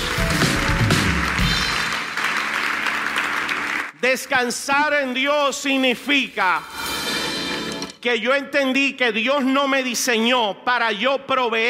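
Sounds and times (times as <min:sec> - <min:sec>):
audience applause: 0:00.0 - 0:04.0
speech: 0:04.0 - 0:06.8, 0:08.0 - 0:11.6.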